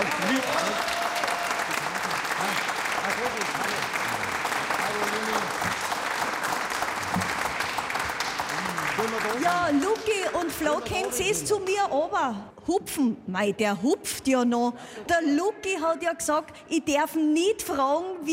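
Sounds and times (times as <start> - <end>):
audience applause: 0.0 - 11.6
speech: 10.3 - 18.3.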